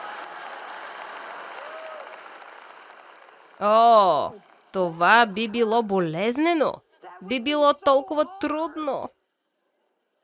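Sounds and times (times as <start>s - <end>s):
audience applause: 0.0s - 5.5s
speech: 3.6s - 9.2s.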